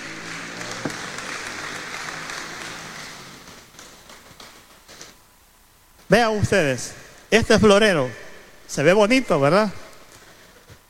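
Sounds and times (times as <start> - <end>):
audience applauding: 0.0 - 5.0
speech: 6.1 - 9.8.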